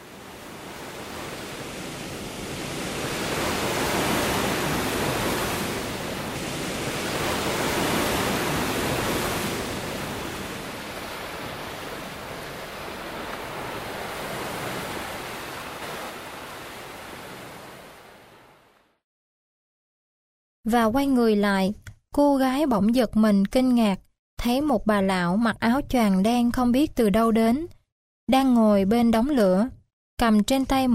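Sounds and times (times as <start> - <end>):
ocean waves lapping on the shore: 0.0 - 19.0
speech: 20.7 - 30.9.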